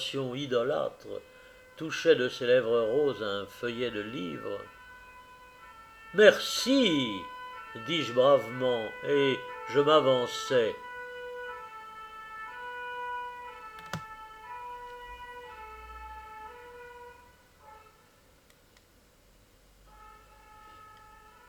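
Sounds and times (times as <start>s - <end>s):
speech: 0.0s - 4.8s, 6.1s - 10.8s
fire engine siren: 0.0s - 18.3s, 19.8s - 21.4s.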